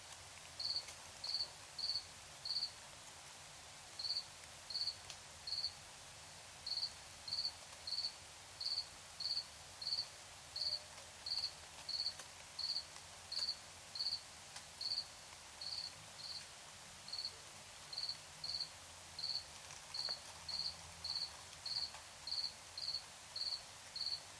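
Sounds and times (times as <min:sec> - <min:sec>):
low steady background hiss: 0:00.0 - 0:24.3
cricket chirping: 0:00.6 - 0:02.7, 0:04.0 - 0:05.8, 0:06.6 - 0:14.2, 0:14.8 - 0:16.4, 0:17.1 - 0:24.2.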